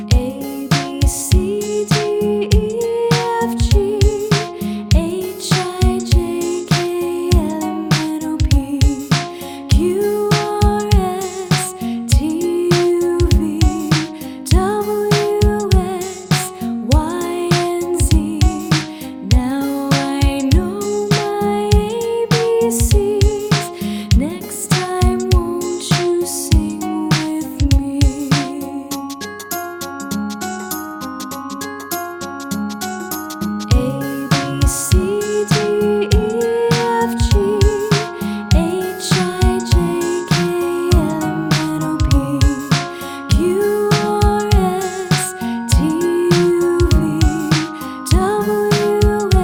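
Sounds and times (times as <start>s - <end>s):
children's song: 0.1s - 29.0s, 33.7s - 49.4s.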